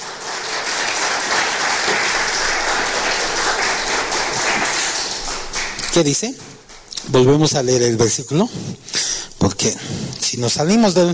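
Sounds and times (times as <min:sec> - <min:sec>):
audience applause: 0:00.0 - 0:06.9
speech: 0:06.0 - 0:11.1.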